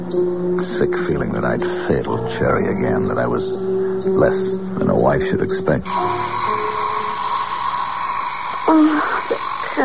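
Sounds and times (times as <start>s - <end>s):
speech: 0.1s - 6.3s
alarm clock buzzing: 5.9s - 9.8s.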